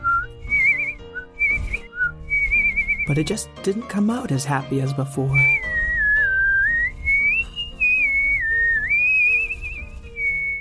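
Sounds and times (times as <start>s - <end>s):
person whistling birdlike song: 0.0s - 3.2s, 5.3s - 10.5s
speech: 3.1s - 5.7s.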